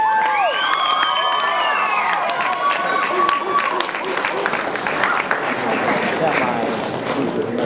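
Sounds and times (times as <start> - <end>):
crowd shouting and whooping: 0.0 - 6.0
crowd applause welcoming performers on stage: 0.0 - 7.6.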